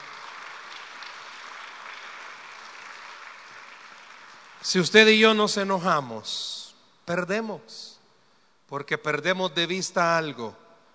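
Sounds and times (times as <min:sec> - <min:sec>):
applause: 0:00.0 - 0:05.7
speech: 0:04.6 - 0:08.0, 0:08.7 - 0:10.6.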